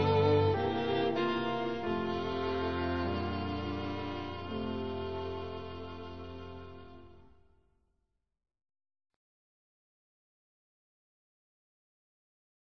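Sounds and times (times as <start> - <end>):
instrumental music: 0.0 - 7.5.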